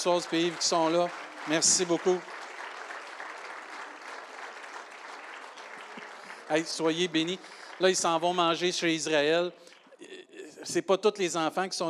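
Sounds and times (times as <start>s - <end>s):
speech: 0.0s - 2.4s, 6.5s - 11.8s
audience applause: 0.0s - 9.5s.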